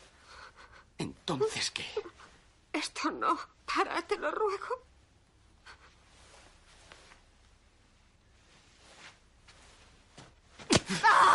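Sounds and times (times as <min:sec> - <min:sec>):
speech: 0:01.3 - 0:02.0, 0:03.0 - 0:04.9
slap to the face knocking a woman to the floor: 0:10.6 - 0:11.0.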